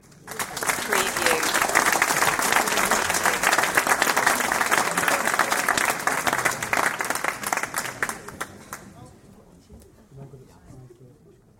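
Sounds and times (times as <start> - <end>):
audience applause: 0.0 - 8.9.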